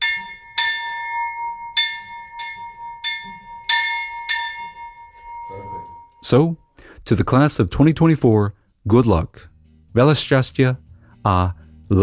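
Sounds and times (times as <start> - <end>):
school bell rung by students after the maturita final exam: 0.0 - 6.6
speech: 6.2 - 12.0.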